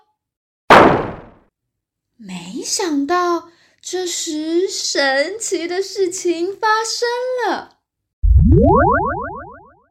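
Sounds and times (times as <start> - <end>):
frog thrown hard against a wall: 0.7 - 1.4
speech: 2.2 - 7.8, 8.6 - 9.3.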